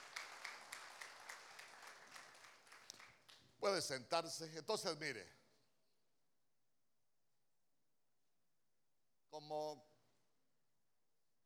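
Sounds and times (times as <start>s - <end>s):
audience clapping hands: 0.0s - 3.7s
speech: 3.6s - 5.4s.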